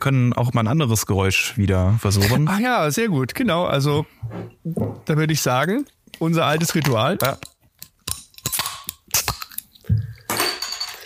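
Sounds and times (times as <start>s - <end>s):
speech: 0.0s - 7.5s
beer bottle levered open with a folding ruler: 6.6s - 11.0s.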